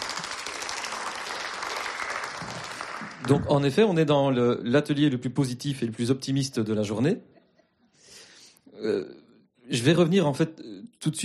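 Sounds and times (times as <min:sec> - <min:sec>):
audience applause: 0:00.0 - 0:03.8
speech: 0:03.2 - 0:07.3, 0:08.8 - 0:11.2.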